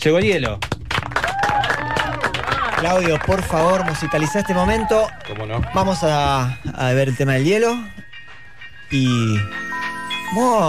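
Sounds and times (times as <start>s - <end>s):
speech: 0.0s - 0.7s, 2.8s - 8.1s, 8.9s - 9.6s, 10.3s - 10.6s
audience applause: 0.6s - 6.0s.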